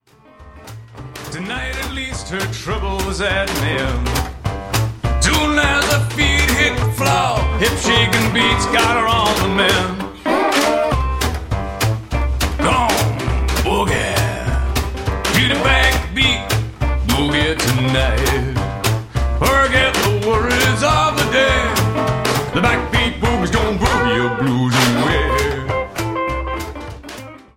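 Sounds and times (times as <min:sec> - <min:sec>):
back beat boogie music: 0:00.1 - 0:27.5.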